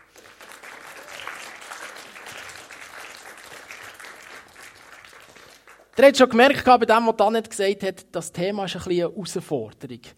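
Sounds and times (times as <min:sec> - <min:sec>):
audience applause: 0:00.0 - 0:06.0
speech: 0:06.0 - 0:10.1.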